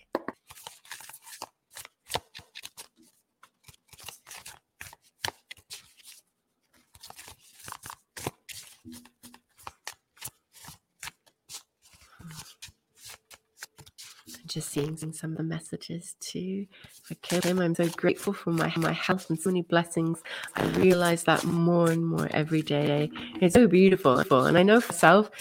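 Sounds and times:
playing cards shuffled during a card reading: 0.1s - 15.0s, 16.8s - 19.6s, 20.4s - 25.4s
speech: 14.6s - 25.4s.

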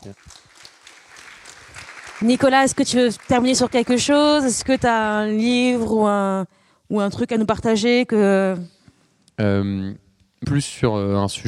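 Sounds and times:
speech: 0.0s - 0.5s, 2.2s - 8.8s, 9.4s - 11.4s
audience applause: 0.0s - 4.8s.

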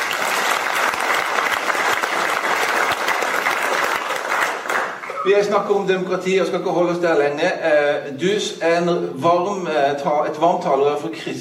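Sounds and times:
audience applause: 0.0s - 5.3s
speech: 5.2s - 11.4s.

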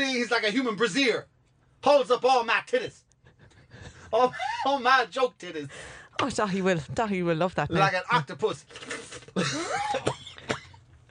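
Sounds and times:
speech: 0.0s - 3.0s, 4.1s - 10.2s
man coughing and clearing his throat after choking: 9.2s - 10.9s.

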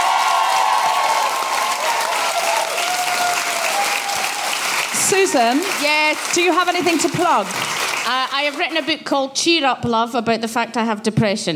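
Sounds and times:
audience applause: 0.0s - 8.9s
speech: 5.1s - 11.5s.

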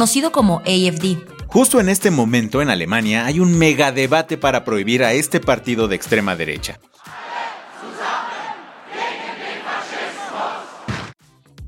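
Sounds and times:
speech: 0.0s - 7.2s
protest crowd chanting against fascism: 7.0s - 11.2s.

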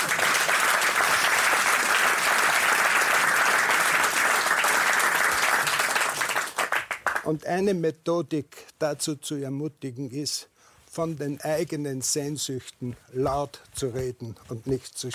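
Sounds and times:
audience applause: 0.0s - 7.3s
speech: 7.3s - 15.1s.

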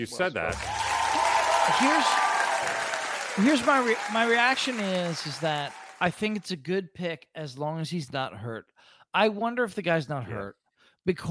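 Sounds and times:
speech: 0.0s - 0.9s, 1.7s - 2.8s, 3.4s - 11.2s
applause: 0.5s - 6.5s.

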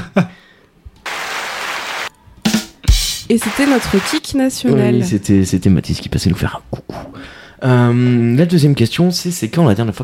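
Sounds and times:
speech: 0.2s - 0.4s, 3.3s - 10.0s
played applause sound effect: 1.0s - 2.1s, 3.3s - 4.3s.

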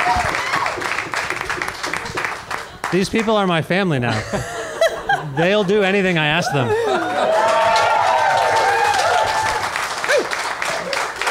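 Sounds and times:
audience applause: 0.0s - 3.5s, 6.5s - 11.2s
speech: 0.1s - 0.4s, 2.9s - 4.6s, 5.2s - 7.1s
laughter: 4.1s - 8.8s.

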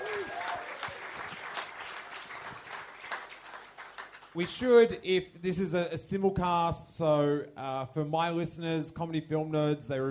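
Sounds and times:
audience applause: 0.0s - 4.4s
speech: 4.4s - 10.0s.

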